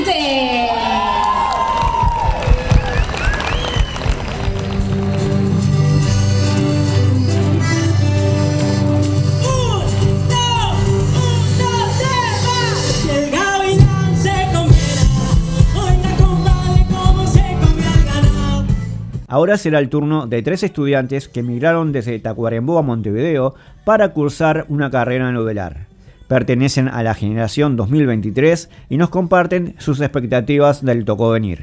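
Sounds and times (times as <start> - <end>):
audience cheering and clapping: 0.2 - 6.6
punchy rhythmic beat: 2.0 - 19.3
music with steady bass line and melodic tones: 4.1 - 19.3
speech: 19.4 - 31.6.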